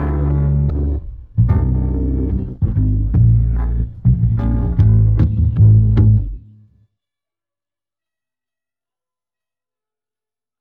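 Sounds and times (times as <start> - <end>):
bass: 0.0 - 6.7.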